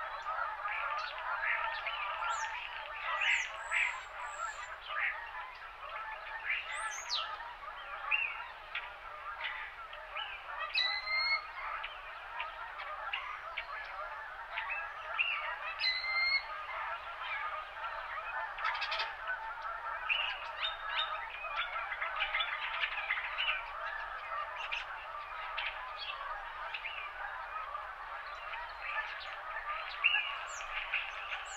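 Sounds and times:
winter morning birds and geese calling: 0:00.0 - 0:31.5.

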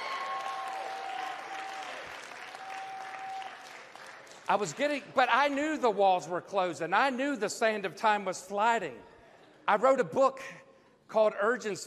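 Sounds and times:
audience applauding: 0:00.0 - 0:04.9
speech: 0:04.5 - 0:09.1, 0:09.7 - 0:11.8.

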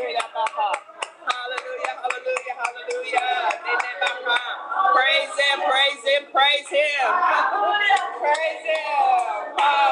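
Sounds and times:
audience hand clapping: 0:00.0 - 0:04.6, 0:07.9 - 0:09.9
voices singing or calling out: 0:02.8 - 0:09.9.

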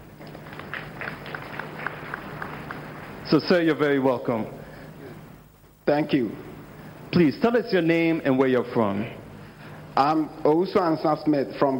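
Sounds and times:
audience clapping: 0:00.0 - 0:03.3
crowd noise hiss: 0:00.0 - 0:11.7
speech: 0:03.3 - 0:04.6, 0:05.9 - 0:06.5, 0:07.1 - 0:09.2, 0:10.0 - 0:11.7.

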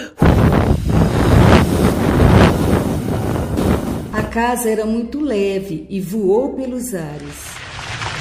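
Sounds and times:
strong blowing gust of wind: 0:00.2 - 0:04.3
speech: 0:04.4 - 0:07.6.

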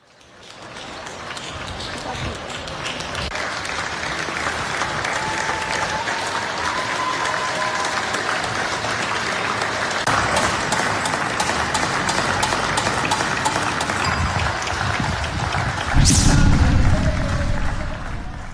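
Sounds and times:
people applauding from balconies: 0:00.0 - 0:18.5.

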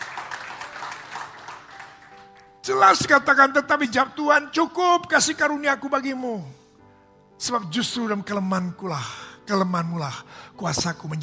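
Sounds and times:
audience applause: 0:00.0 - 0:02.6
speech: 0:02.6 - 0:06.6, 0:07.4 - 0:11.2.

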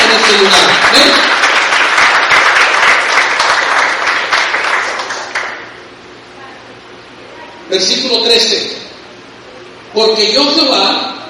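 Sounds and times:
crowd applauding: 0:00.0 - 0:05.8
speech: 0:07.8 - 0:08.7, 0:10.0 - 0:11.2.

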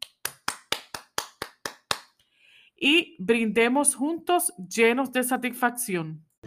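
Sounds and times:
hands clapping: 0:00.0 - 0:02.2
speech: 0:02.8 - 0:06.3.

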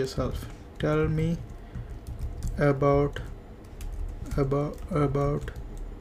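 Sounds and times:
person speaking: 0:00.0 - 0:05.8
computer keyboard typing: 0:00.3 - 0:05.9.

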